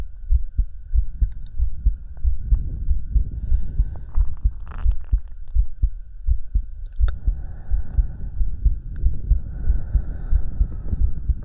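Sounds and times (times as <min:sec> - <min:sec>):
constant high hum: 0:00.0 - 0:11.4
heartbeat thumping: 0:00.0 - 0:11.4.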